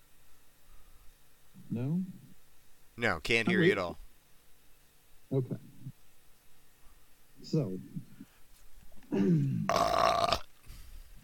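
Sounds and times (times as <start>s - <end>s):
speech: 1.7s - 2.2s, 3.0s - 4.0s, 5.3s - 5.7s, 7.4s - 8.1s, 9.1s - 10.4s
throat clearing: 9.1s - 9.8s.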